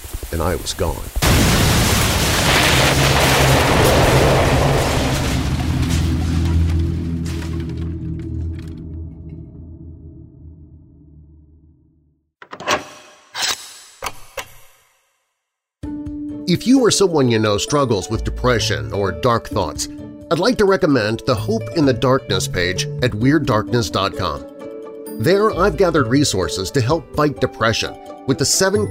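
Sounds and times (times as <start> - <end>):
sharp cracking bursts: 0.0 - 7.2
speech: 0.3 - 2.1, 2.8 - 3.7, 16.5 - 24.5, 25.2 - 28.8
explosives detonating aboard a spacecraft in a fiction scene: 1.1 - 8.1.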